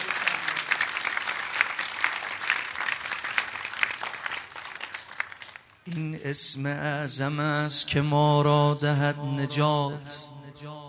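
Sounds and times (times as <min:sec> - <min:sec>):
crowd applause at a devotional chanting gathering: 0:00.0 - 0:06.1
speech: 0:05.9 - 0:10.8.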